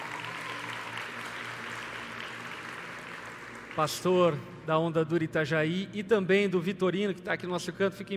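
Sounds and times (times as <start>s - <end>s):
audience applause: 0.0s - 4.5s
speech: 3.8s - 8.1s.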